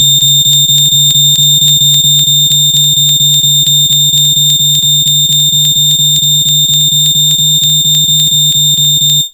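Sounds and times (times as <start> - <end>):
fire alarm: 0.0 - 9.3.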